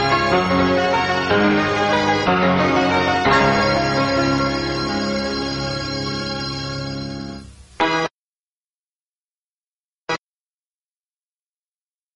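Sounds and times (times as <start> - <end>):
instrumental music: 0.0 - 7.6.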